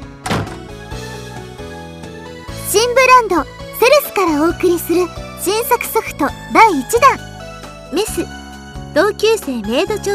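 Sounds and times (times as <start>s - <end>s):
door knock settling: 0.2s - 0.7s
door pushed shut: 0.2s - 0.8s
speech: 2.7s - 7.3s, 7.9s - 8.4s, 9.0s - 10.1s.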